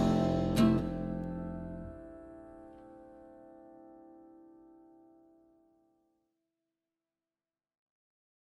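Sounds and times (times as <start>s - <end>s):
harp note: 0.0s - 2.0s.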